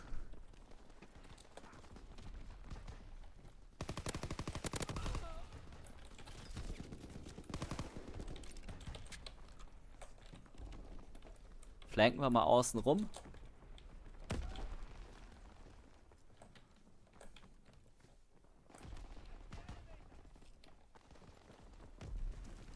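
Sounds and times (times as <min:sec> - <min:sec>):
automatic gunfire in a shooter video game: 0:00.0 - 0:09.9, 0:14.0 - 0:16.0, 0:18.8 - 0:22.7
shooter video game noise: 0:00.0 - 0:22.7
speech: 0:12.0 - 0:13.2.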